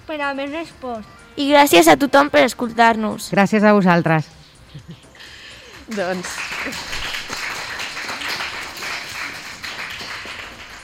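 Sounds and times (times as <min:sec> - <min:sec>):
speech: 0:00.1 - 0:05.0, 0:05.9 - 0:06.9
applause: 0:05.6 - 0:10.8.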